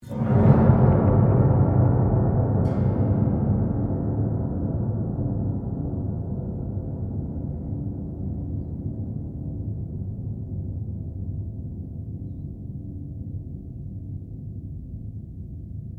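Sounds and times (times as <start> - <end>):
upright piano strings strummed upward without keyboard: 0.0 - 9.2.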